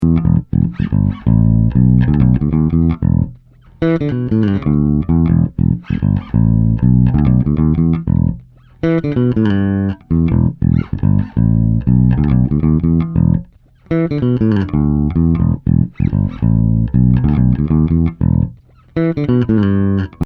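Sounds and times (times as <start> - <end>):
bass: 0.0 - 20.2.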